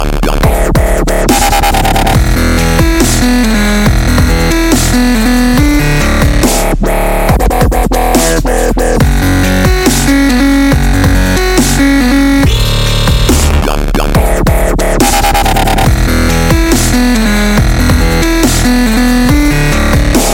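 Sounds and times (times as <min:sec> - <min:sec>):
dubstep music: 0:00.0 - 0:20.3.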